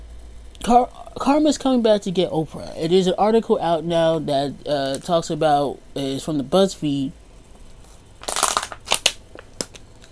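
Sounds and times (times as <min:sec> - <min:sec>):
speech: 0:00.7 - 0:07.2
plastic water bottle crinkling while drinking: 0:08.2 - 0:10.1.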